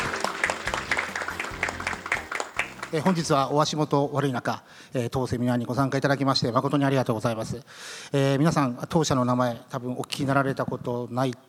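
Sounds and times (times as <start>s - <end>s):
audience applause welcoming a speaker: 0.0s - 3.4s
speech: 2.9s - 11.4s.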